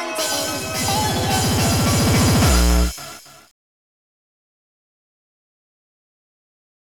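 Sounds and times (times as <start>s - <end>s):
hardcore music: 0.2s - 3.4s.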